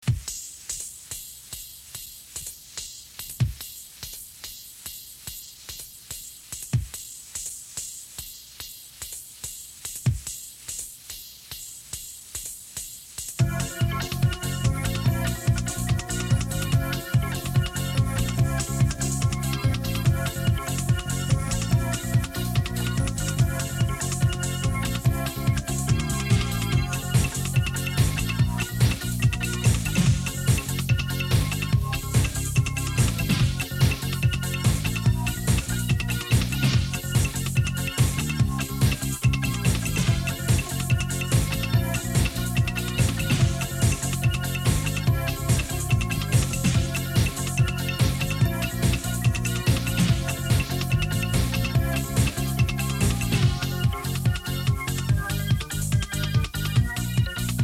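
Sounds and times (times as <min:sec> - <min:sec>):
street ska music: 0:00.0 - 0:57.6.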